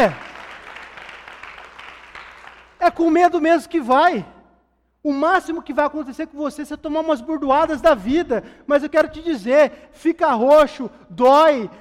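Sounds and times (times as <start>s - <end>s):
speech: 0.0s - 0.2s, 2.9s - 4.3s, 5.0s - 11.7s
audience applause: 0.0s - 2.8s.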